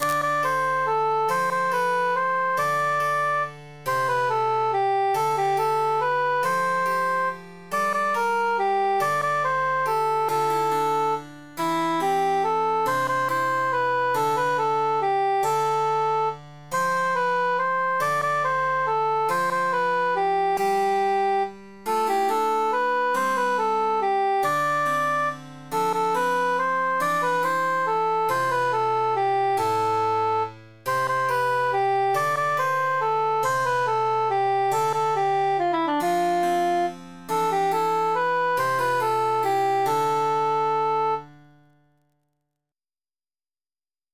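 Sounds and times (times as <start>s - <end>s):
emphasized cantus melody: 0.0s - 41.5s.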